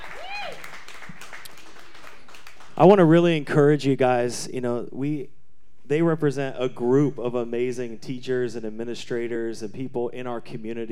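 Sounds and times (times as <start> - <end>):
audience applause: 0.0 - 2.8
speech: 2.8 - 10.9.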